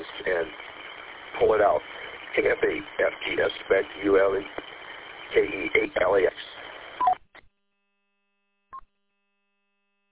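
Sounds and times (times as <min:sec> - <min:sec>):
radio crackle: 0:00.0 - 0:07.5
speech: 0:01.4 - 0:04.7, 0:05.3 - 0:06.5.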